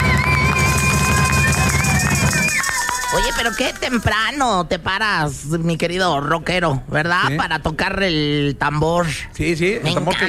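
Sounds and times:
applause: 0.0 - 4.2
speech: 3.2 - 10.2.

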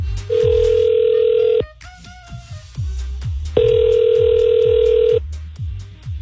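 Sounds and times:
soft regular low thumping pulse: 0.0 - 0.9, 3.6 - 5.1
dialing beeps: 0.3 - 1.7, 3.6 - 5.2
telephone ringback tone: 0.3 - 1.7, 3.6 - 5.2.

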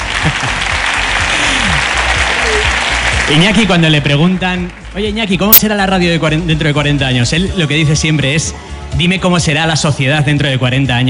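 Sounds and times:
crowd applauding: 0.0 - 5.3
speech: 0.2 - 0.8, 3.3 - 11.0.

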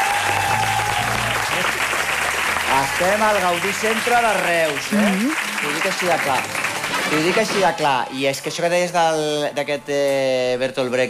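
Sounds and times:
audience applause at the Gaudí Centre in Reus: 0.0 - 8.0
speech: 2.8 - 11.0.

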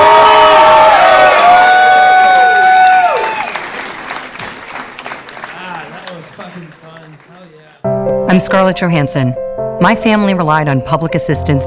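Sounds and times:
audience whistles and whoops: 0.0 - 3.6
audience applause at the end of a show: 0.0 - 7.9
speech: 8.4 - 11.6.

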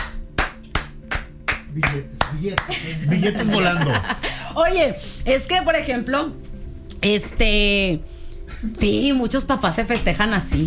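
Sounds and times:
clapping: 0.0 - 2.8
speech: 1.8 - 10.6
laughter: 2.5 - 4.6.

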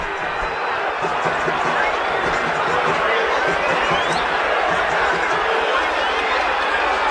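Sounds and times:
large football stadium crowd booing and shouting in protest: 0.0 - 7.1.

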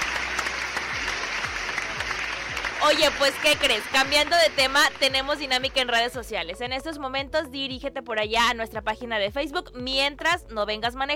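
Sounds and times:
applause: 0.0 - 6.0
speech: 2.8 - 11.1.

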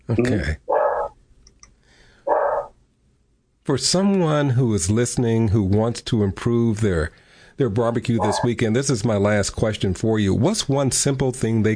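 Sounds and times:
speech: 0.1 - 0.7, 3.7 - 11.7
dog barking: 0.7 - 1.1, 2.3 - 2.7, 8.2 - 8.5.

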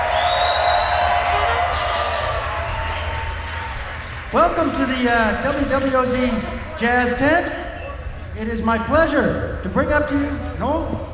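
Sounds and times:
crowd whistling: 0.0 - 4.1, 7.6 - 8.2
crowd cheering in the WWOZ Jazz Tent: 0.0 - 8.4
speech: 4.3 - 7.6, 8.4 - 11.1.

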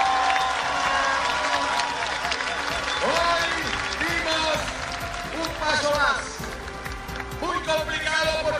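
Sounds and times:
scattered voices and cheers: 0.0 - 6.6
crowd applause: 0.0 - 8.5.

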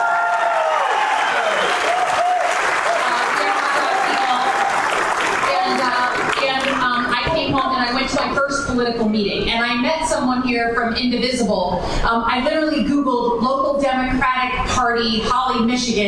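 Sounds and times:
crowd applauding with some cheering: 0.0 - 7.2
speech: 8.3 - 16.0.

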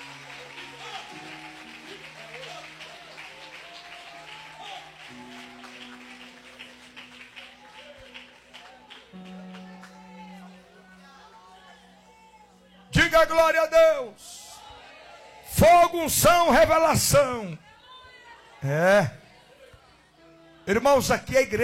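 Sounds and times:
audience applause: 0.0 - 11.0
speech: 13.1 - 14.4, 15.6 - 17.6, 18.6 - 19.2, 20.7 - 21.6.

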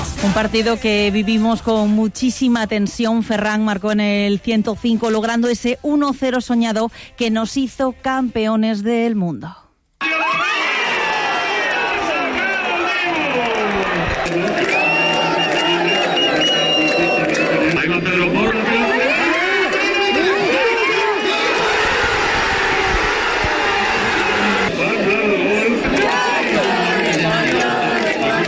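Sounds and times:
speech: 0.2 - 10.6
crowd celebrating a World Cup final victory at Centro Botín: 10.0 - 28.4.

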